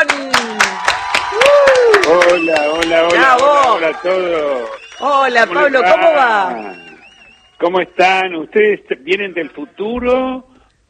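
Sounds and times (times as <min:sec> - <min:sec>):
audience applause: 0:00.0 - 0:07.5
speech: 0:02.4 - 0:06.8, 0:07.6 - 0:10.8.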